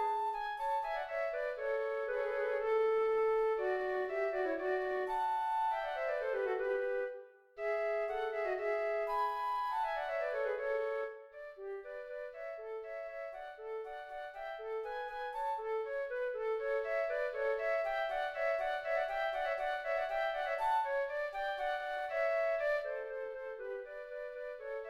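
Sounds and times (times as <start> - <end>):
allegro flute duet: 0.0 - 24.8.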